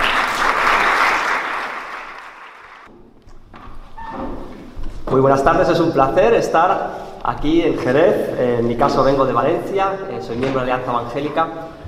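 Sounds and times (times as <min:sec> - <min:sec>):
audience applause welcoming speakers: 0:00.0 - 0:02.9
speech: 0:05.2 - 0:11.8.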